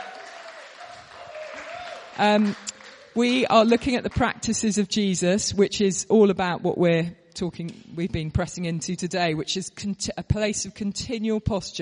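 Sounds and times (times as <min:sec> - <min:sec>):
audience clapping welcome: 0:00.0 - 0:04.2
speech: 0:02.2 - 0:11.7.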